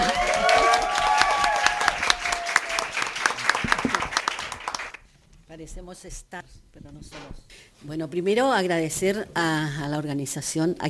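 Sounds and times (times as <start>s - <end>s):
audience applause: 0.0s - 5.0s
speech: 5.9s - 10.8s.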